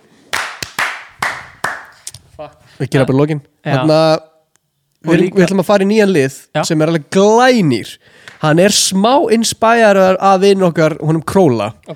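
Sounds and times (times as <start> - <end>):
slow hand claps for a live guest shout-out: 0.3 - 2.2
speech: 2.4 - 4.3, 5.0 - 11.9.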